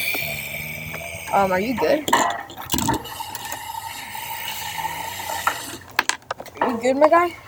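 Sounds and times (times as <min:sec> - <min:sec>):
washing dishes at running sink: 0:00.0 - 0:07.4
speech: 0:01.3 - 0:02.4, 0:06.8 - 0:07.4.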